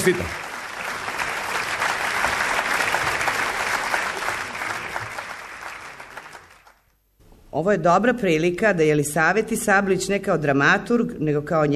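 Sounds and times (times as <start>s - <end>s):
speech: 0.0s - 0.4s, 7.6s - 11.7s
audience applause after congratulations: 0.0s - 6.8s.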